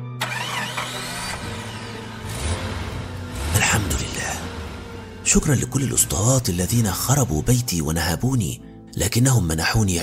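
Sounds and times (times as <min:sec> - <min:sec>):
car engine cranking and starting: 0:00.1 - 0:07.9
speech: 0:05.3 - 0:10.0.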